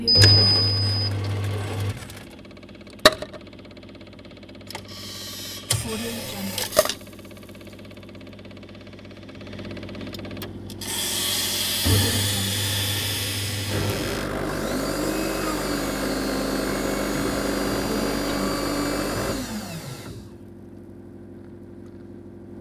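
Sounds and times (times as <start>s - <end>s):
automatic espresso machine: 0.1s - 2.3s, 4.7s - 20.5s.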